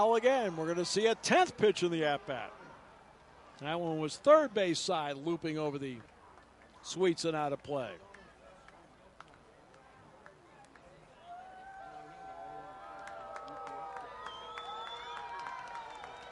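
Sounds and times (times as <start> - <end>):
speech: 0.0 - 2.6, 3.6 - 6.1, 6.8 - 8.1
baseball crowd cheering at a ballpark: 0.0 - 5.2, 10.2 - 16.3.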